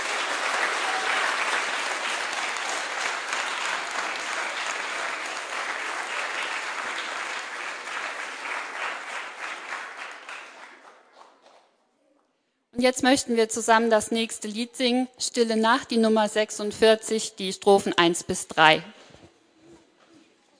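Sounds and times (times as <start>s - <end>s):
audience applause: 0.0s - 11.1s
speech: 12.8s - 19.0s.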